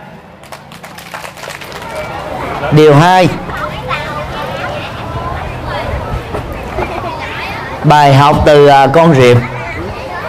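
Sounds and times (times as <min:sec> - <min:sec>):
audience applause: 0:00.4 - 0:02.7
speech: 0:02.7 - 0:03.5, 0:07.8 - 0:09.5.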